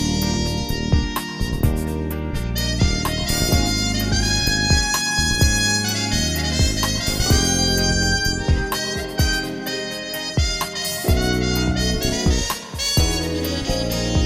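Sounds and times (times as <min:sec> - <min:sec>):
smooth jazz music: 0:00.0 - 0:14.2.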